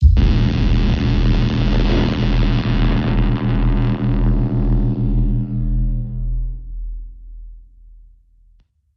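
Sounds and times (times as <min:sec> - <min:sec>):
deadly static stinger: 0:00.0 - 0:07.0.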